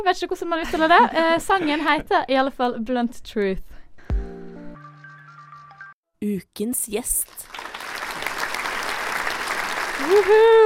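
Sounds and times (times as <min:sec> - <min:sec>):
speech: 0:00.0 - 0:03.8, 0:06.2 - 0:07.6, 0:10.0 - 0:10.6
applause: 0:07.1 - 0:10.6.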